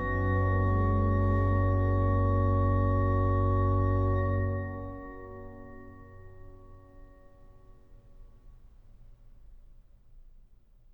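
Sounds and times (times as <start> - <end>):
organ chorale: 0.0 - 6.0.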